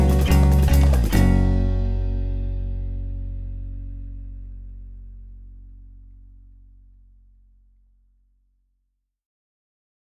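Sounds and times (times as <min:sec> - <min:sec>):
settled acoustic southern music: 0:00.0 - 0:04.0.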